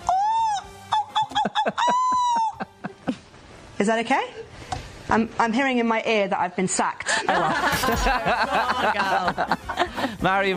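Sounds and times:
person imitating a seagull call: 0:00.1 - 0:02.6
speech: 0:03.8 - 0:04.4, 0:05.1 - 0:09.6, 0:10.2 - 0:10.5
laughter: 0:07.1 - 0:10.5.

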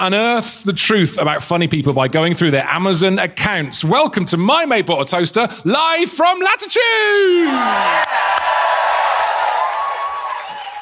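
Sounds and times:
speech: 0:00.0 - 0:08.6
live audience cheering through masks: 0:07.3 - 0:10.7.

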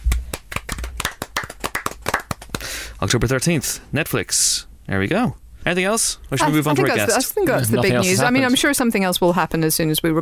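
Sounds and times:
applause of quick irregular hand claps: 0:00.0 - 0:02.8
speech: 0:03.0 - 0:10.2.

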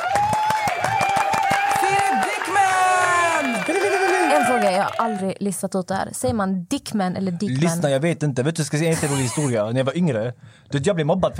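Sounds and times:
cheering voices and whoops: 0:00.0 - 0:05.3
crowd clapping: 0:00.0 - 0:05.4
speech: 0:04.9 - 0:11.3.

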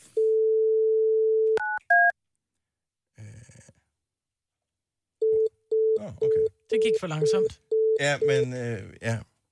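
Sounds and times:
fax machine dial tone: 0:00.2 - 0:02.1
speech: 0:06.1 - 0:09.3.

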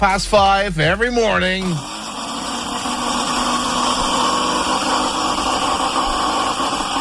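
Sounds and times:
speech: 0:00.0 - 0:02.0
loud blender making smoothies: 0:01.2 - 0:06.9.

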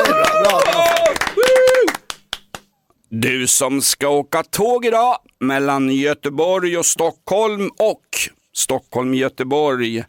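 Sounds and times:
applause for a guest: 0:00.0 - 0:02.7
speech: 0:03.2 - 0:10.0.

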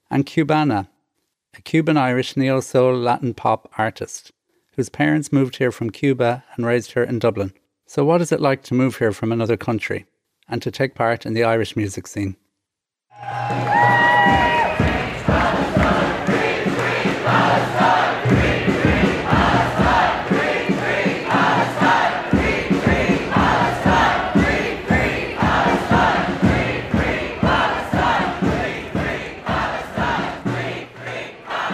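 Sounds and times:
speech: 0:00.1 - 0:00.9, 0:01.6 - 0:12.4
protest crowd chanting on Molesworth Street in Dublin: 0:14.3 - 0:31.7.

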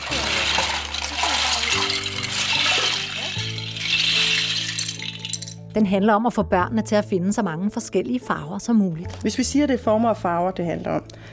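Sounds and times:
toy blocks poured out onto a classroom floor: 0:00.0 - 0:05.6
steady music: 0:00.0 - 0:11.3
speech: 0:05.8 - 0:11.3.

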